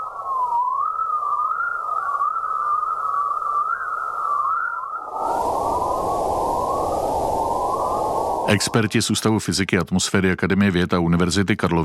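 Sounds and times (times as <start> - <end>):
electromagnetic waves at audible frequencies chirping: 0.0 - 9.4
speech: 8.5 - 11.8.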